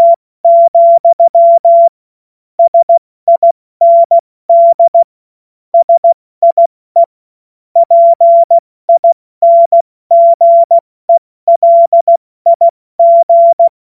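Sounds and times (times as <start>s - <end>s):
CW Morse code beeps: 0.0s - 2.0s, 2.6s - 5.1s, 5.8s - 7.1s, 7.8s - 10.8s, 11.5s - 13.7s.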